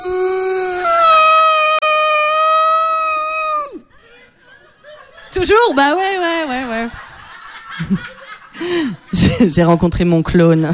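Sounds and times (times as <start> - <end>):
person imitating an old ghost's wail: 0.0 - 3.8
laughter: 3.9 - 9.7
speech: 5.4 - 7.0, 7.8 - 10.7.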